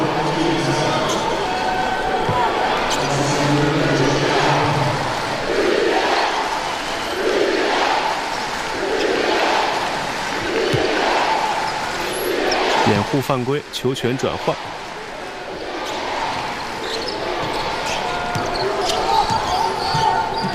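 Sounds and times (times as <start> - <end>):
arena crowd of home fans booing: 0.0 - 20.5
speech: 13.3 - 14.8.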